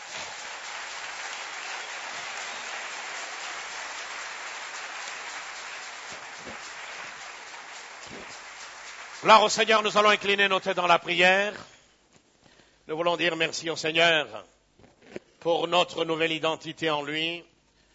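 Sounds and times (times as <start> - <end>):
church congregation applauding in praise: 0.0 - 10.7
speech: 9.2 - 11.7, 12.9 - 14.5, 15.4 - 17.5.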